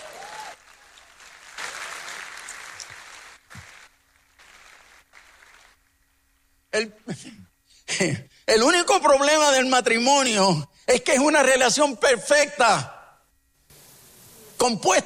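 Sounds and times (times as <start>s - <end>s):
audience applause: 0.0s - 5.8s
speech: 6.8s - 13.0s, 14.6s - 15.0s.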